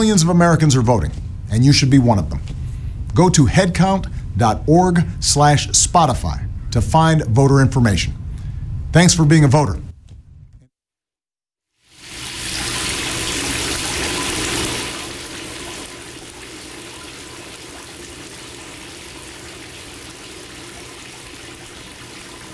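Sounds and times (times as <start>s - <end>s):
speech: 0.0s - 2.6s, 3.2s - 8.2s, 8.9s - 9.9s
water churning and bubbling in a jacuzzi: 12.0s - 22.5s.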